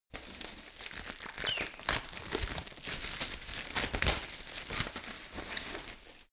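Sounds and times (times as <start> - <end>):
plastic packaging handling: 0.1 - 6.3.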